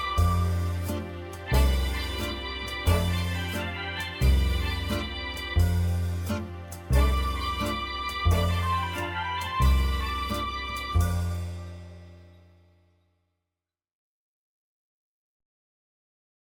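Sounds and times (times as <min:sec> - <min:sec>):
crooner jazz singer singing: 0:00.0 - 0:11.8.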